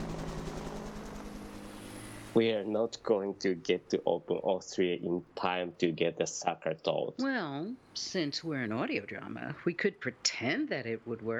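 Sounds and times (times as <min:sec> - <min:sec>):
helicopter flying: 0:00.0 - 0:02.7
laughter: 0:02.4 - 0:07.0
speech: 0:02.4 - 0:11.3.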